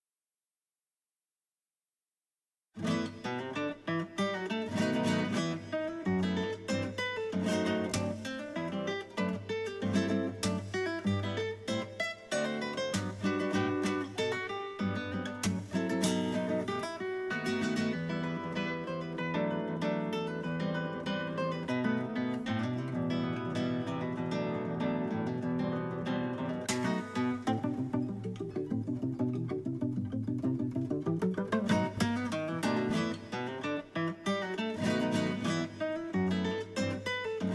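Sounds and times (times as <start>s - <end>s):
guitar: 2.8s - 37.5s.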